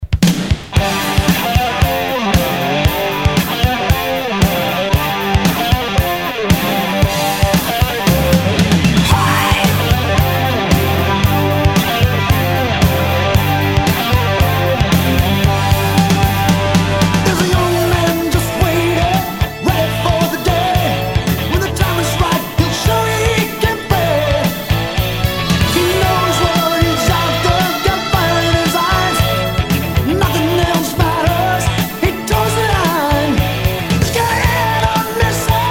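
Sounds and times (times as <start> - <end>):
rock and roll music: 0.0 - 35.6.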